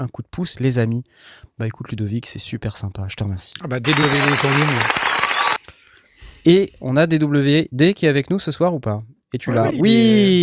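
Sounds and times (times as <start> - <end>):
speech: 0.0 - 5.2, 6.4 - 10.4
applause: 3.8 - 5.6.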